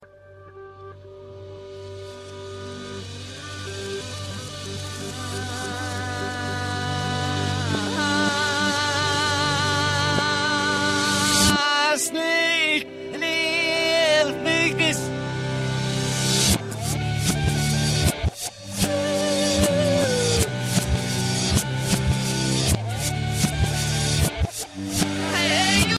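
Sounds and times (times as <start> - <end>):
reversed music: 0.9 - 25.9.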